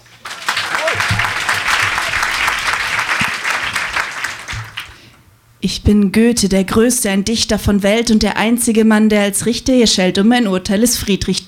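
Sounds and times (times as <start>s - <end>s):
audience applause: 0.0s - 5.1s
speech: 5.6s - 11.4s.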